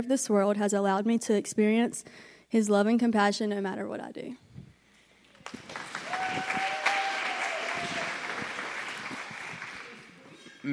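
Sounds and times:
speech: 0.0s - 4.4s
audience clapping: 5.3s - 10.2s.

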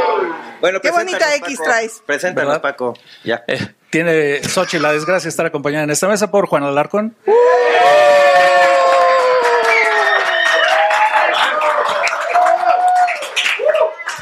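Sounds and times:
crowd cheering and whooping: 0.0s - 0.6s, 7.3s - 14.1s
speech: 0.6s - 8.2s
crowd clapping: 8.3s - 14.1s.

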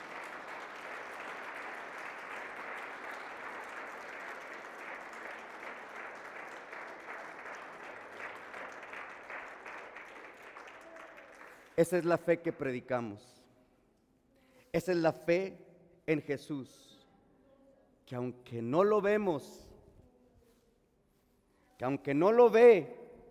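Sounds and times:
audience applause: 0.0s - 11.8s
speech: 11.8s - 13.4s, 14.8s - 16.9s, 18.1s - 19.6s, 21.8s - 23.0s.

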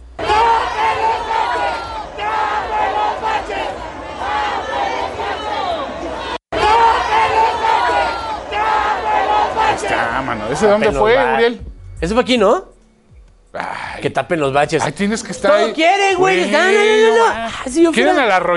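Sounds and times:
crowd shouting at a public celebration: 0.0s - 11.4s, 15.5s - 17.4s
speech: 10.6s - 12.7s, 13.5s - 18.5s.

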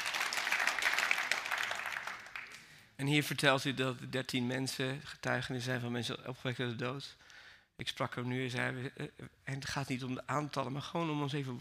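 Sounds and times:
church congregation clapping: 0.0s - 2.8s
speech: 3.0s - 11.5s.

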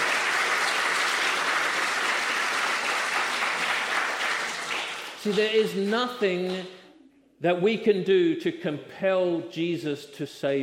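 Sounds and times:
audience applause: 0.0s - 5.6s
speech: 5.2s - 6.8s, 7.4s - 10.6s.

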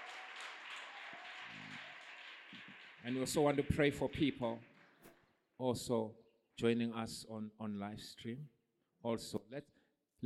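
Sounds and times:
church congregation clapping hands in worship for Jesus: 0.0s - 5.2s
speech: 3.0s - 4.7s, 5.6s - 10.2s.

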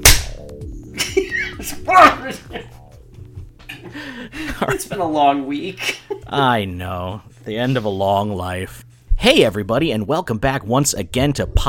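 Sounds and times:
big hand clap: 0.0s - 0.5s
speech: 1.6s - 2.8s, 4.6s - 11.6s.

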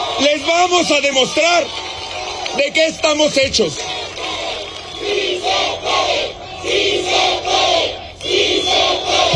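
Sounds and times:
speech: 0.2s - 1.8s, 2.5s - 4.0s
crowd chanting president: 3.5s - 9.3s.

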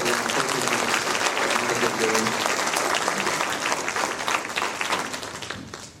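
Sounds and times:
audience applause at a talk: 0.0s - 5.9s.

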